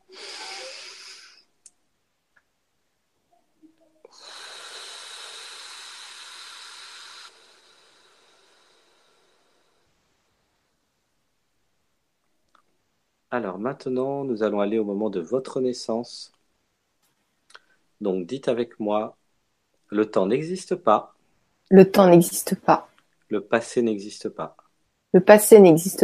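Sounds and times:
deep breathing: 0:00.0 - 0:01.5, 0:04.0 - 0:10.0
speech: 0:13.3 - 0:16.4, 0:18.0 - 0:19.2, 0:19.9 - 0:21.1, 0:21.7 - 0:26.0.

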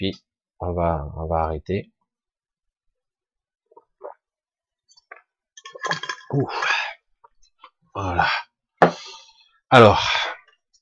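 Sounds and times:
speech: 0:00.0 - 0:02.0, 0:05.9 - 0:06.8, 0:08.0 - 0:08.4, 0:09.7 - 0:10.3
speaker drinking: 0:03.7 - 0:04.3, 0:05.0 - 0:07.0.

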